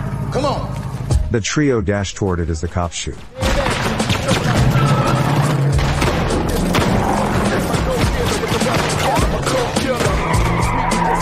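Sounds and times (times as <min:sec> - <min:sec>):
1970s Land Cruiser SUV engine driving: 0:00.0 - 0:01.2, 0:04.3 - 0:11.2
speech: 0:00.3 - 0:00.7, 0:01.3 - 0:03.4
1970s Land Cruiser SUV tires skidding: 0:04.4 - 0:11.2.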